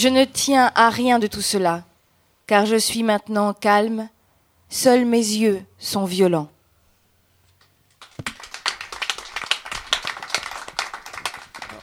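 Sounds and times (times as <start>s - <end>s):
speech: 0.0s - 1.9s, 2.5s - 4.1s, 4.7s - 6.5s
audience applause: 8.3s - 11.8s.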